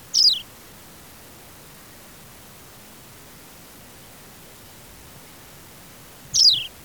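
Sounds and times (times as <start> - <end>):
Australian pipit Anthus australis giving downslurred call notes: 0.1 - 0.5, 6.3 - 6.8.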